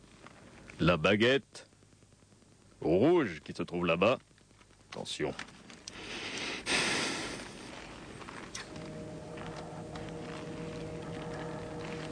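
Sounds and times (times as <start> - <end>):
low electrical hum: 0.0 - 12.1
speech: 0.8 - 1.7, 2.8 - 4.3, 4.9 - 5.5
sniffing: 5.9 - 7.9
tense heavy breathing of a player: 5.9 - 8.0.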